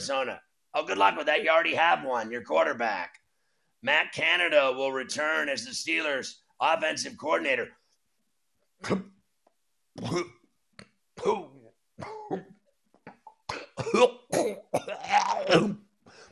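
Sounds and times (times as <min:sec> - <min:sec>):
speech: 0:00.0 - 0:03.2, 0:03.8 - 0:07.8, 0:08.8 - 0:09.1, 0:10.0 - 0:10.4, 0:11.2 - 0:12.5, 0:13.8 - 0:15.8
person coughing and gagging: 0:08.8 - 0:09.2, 0:10.0 - 0:10.5, 0:11.2 - 0:16.0.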